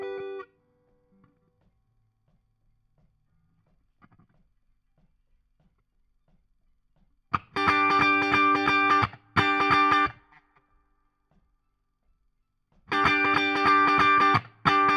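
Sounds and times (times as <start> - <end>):
guitar solo: 0.0 - 0.5, 7.4 - 10.4, 12.9 - 14.9.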